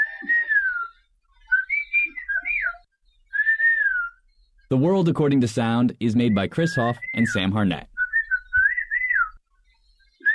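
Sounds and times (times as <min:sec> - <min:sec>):
whistled language phrases with gliding pitch: 0:00.0 - 0:04.4, 0:06.0 - 0:09.4
speech: 0:04.7 - 0:07.9.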